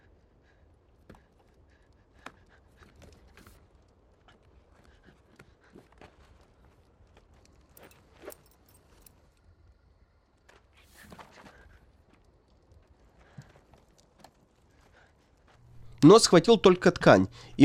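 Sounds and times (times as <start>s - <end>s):
keys jangling during a search at an open car door: 7.7s - 9.2s
speech: 16.0s - 17.6s.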